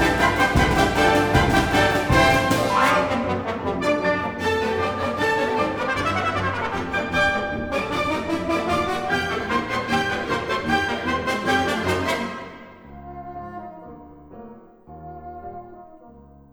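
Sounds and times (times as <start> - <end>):
chamber orchestra playing a galop: 0.0 - 12.9.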